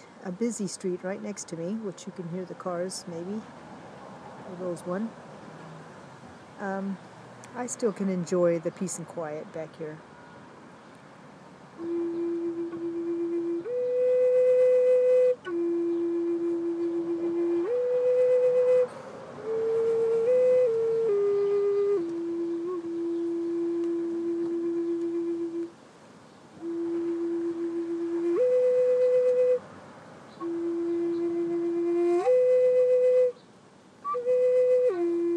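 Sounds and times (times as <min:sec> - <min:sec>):
speech: 0:00.2 - 0:03.6, 0:04.5 - 0:05.2, 0:06.6 - 0:10.1
flute being played: 0:11.8 - 0:25.8, 0:26.6 - 0:29.7, 0:30.3 - 0:33.4, 0:34.0 - 0:35.3.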